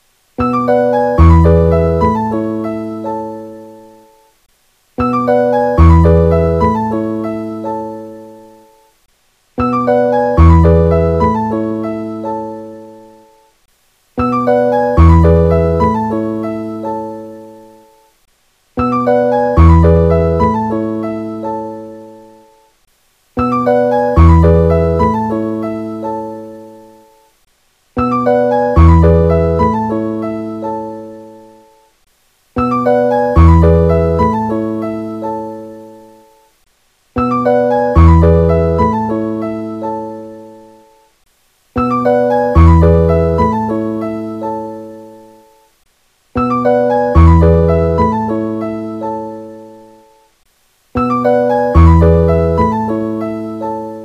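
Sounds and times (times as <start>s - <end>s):
ringtone: 0.4s - 4.2s, 5.0s - 8.8s, 9.6s - 13.3s, 14.2s - 17.8s, 18.8s - 22.0s, 23.4s - 26.6s, 28.0s - 31.6s, 32.6s - 36.3s, 37.2s - 40.9s, 41.8s - 45.2s, 46.4s - 49.9s, 51.0s - 54.0s.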